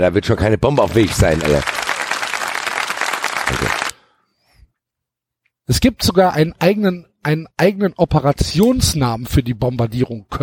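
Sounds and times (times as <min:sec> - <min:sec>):
speech: 0:00.0 - 0:01.8, 0:03.6 - 0:03.8, 0:05.7 - 0:10.4
applause sound effect: 0:00.7 - 0:04.0.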